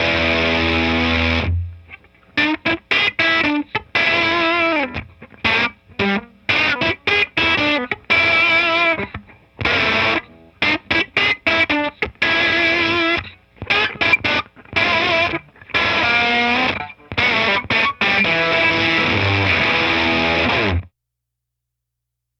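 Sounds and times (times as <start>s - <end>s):
blues music from an LP: 0.0s - 20.9s.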